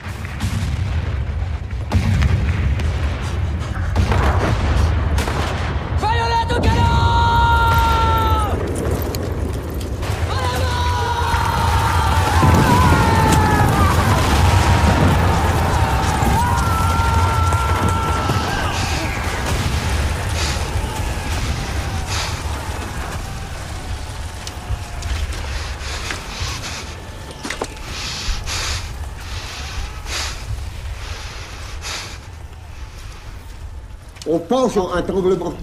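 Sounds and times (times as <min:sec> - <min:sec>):
First World War battle assault explosions: 0:00.0 - 0:34.2
people shouting over a First World War barrage: 0:06.0 - 0:09.0, 0:10.0 - 0:31.4
speech: 0:34.5 - 0:35.6.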